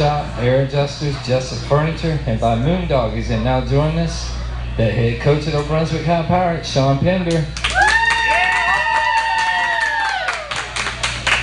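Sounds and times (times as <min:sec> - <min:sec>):
speech: 0:00.0 - 0:07.8
small vocal crowd cheering: 0:07.6 - 0:11.4.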